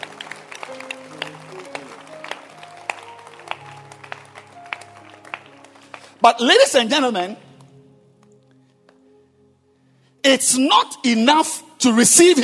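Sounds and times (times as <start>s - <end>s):
audience clapping hands: 0.0s - 6.5s
speech: 6.2s - 7.4s, 10.3s - 12.4s.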